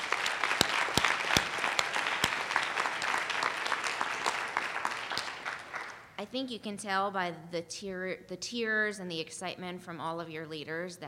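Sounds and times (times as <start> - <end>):
audience applause: 0.0 - 6.0
speech: 6.3 - 11.0.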